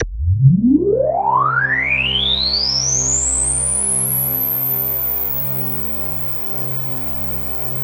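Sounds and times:
KORG DW8000 vintage synthesizer keyboard: 0.0 - 1.6.

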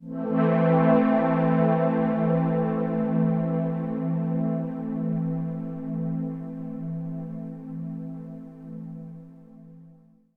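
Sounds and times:
synth pad: 0.0 - 8.2.

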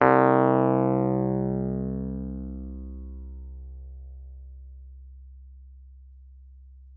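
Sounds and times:
Wurlitzer electric piano note C2: 0.0 - 3.4.

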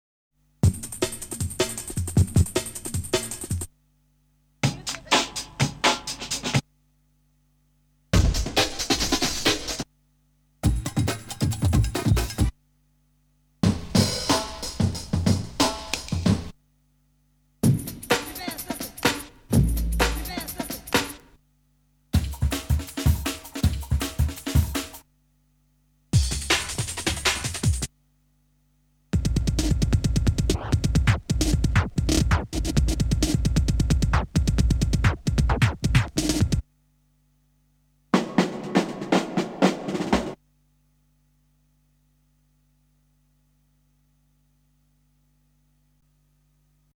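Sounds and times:
breakbeat drums: 0.6 - 3.7, 4.6 - 6.7, 8.1 - 9.9, 10.6 - 12.6, 13.6 - 16.6, 17.6 - 21.4, 22.2 - 25.0, 26.1 - 27.9, 29.2 - 36.6, 38.1 - 40.4.

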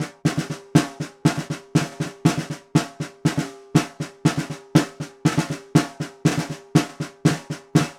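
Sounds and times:
vintage Ludwig snare drum: 0.0 - 7.9.

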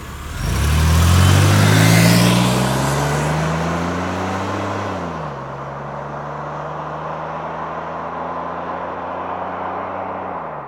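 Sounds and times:
car driving away: 0.0 - 10.6.

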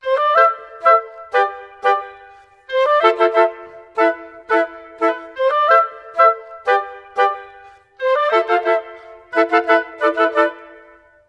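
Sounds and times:
woodwinds playing in A minor: 0.0 - 11.2.

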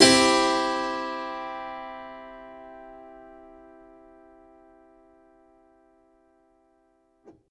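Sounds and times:
harpsichord in a major key: 0.0 - 5.9
piano: 0.0 - 7.4.

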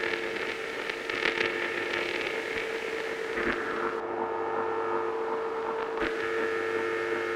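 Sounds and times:
filtered noise: 0.0 - 7.3.

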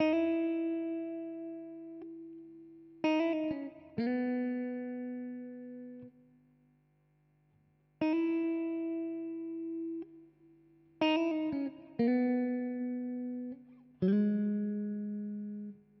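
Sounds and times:
guitar loop of chords and melodies in C sharp minor: 0.0 - 6.2, 8.0 - 15.9.

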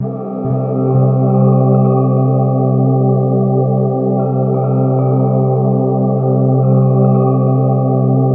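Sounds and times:
ambient atmospheric soundtrack music: 0.0 - 8.3.

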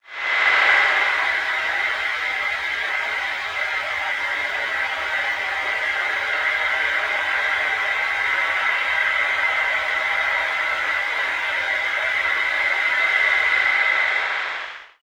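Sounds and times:
melting shortwave radio noise: 0.0 - 15.0.

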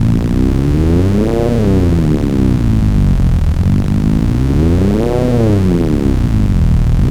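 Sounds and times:
Cwejman Grinder modular synthesizer: 0.0 - 7.0.

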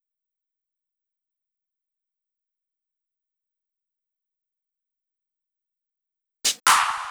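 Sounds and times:
clap effect: 6.5 - 7.0.

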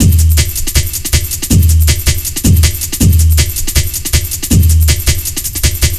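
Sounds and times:
drum loop: 0.0 - 5.9.

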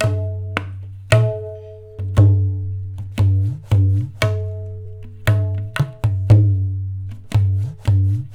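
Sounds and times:
tabla playing in Indian tradition: 0.0 - 8.3.

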